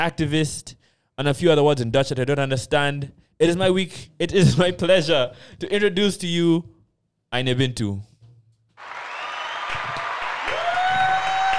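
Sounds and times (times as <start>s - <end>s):
speech: 0.0s - 8.1s
crowd applauding: 8.8s - 11.5s.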